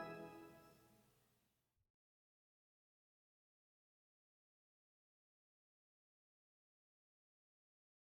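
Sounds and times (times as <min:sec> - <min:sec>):
short organ chorale: 0:00.0 - 0:00.6.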